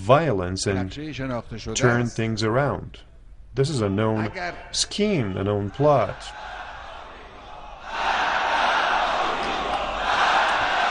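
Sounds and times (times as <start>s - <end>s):
speech: 0.0s - 6.5s
crowd shouting protest chant: 5.6s - 10.8s.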